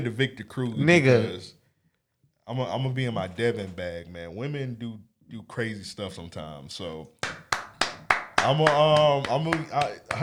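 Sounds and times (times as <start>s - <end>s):
speech: 0.0s - 1.6s, 2.5s - 7.4s, 8.4s - 10.2s
hand claps: 7.2s - 10.2s.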